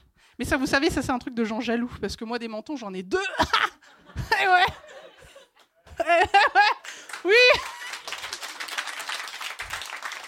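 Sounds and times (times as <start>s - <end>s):
speech: 0.4s - 4.8s
laughter: 3.4s - 8.7s
audience applause: 6.8s - 10.2s.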